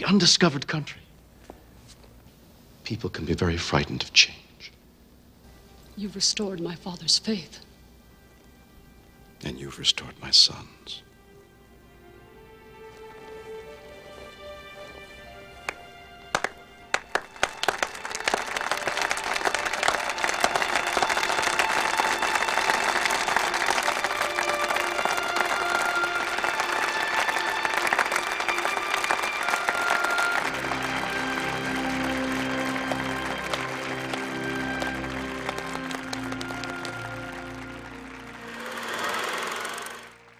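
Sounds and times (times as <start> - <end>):
music: 0.0 - 1.0, 3.4 - 40.3
speech: 0.0 - 1.0, 2.9 - 4.4, 6.0 - 7.7, 9.4 - 11.1
slow clap building to applause from a large crowd: 14.1 - 40.3.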